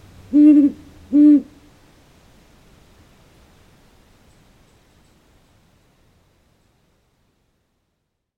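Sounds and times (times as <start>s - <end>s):
great horned owl hooting: 0.3s - 1.6s.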